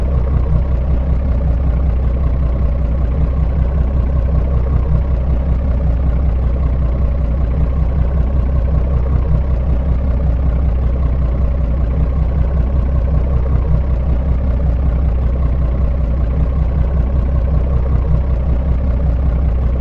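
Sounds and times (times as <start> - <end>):
fishing boat engine idling: 0.0 - 19.8.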